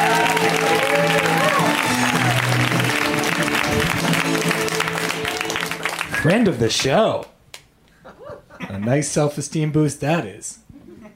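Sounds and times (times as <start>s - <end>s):
audience applause for a comedian: 0.0s - 7.0s
speech: 6.2s - 7.3s, 8.8s - 10.6s.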